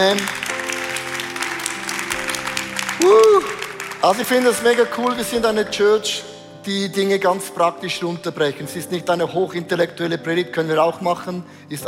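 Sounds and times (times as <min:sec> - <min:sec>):
speech: 0:00.0 - 0:00.4, 0:03.0 - 0:11.8
crowd applause: 0:00.0 - 0:05.2.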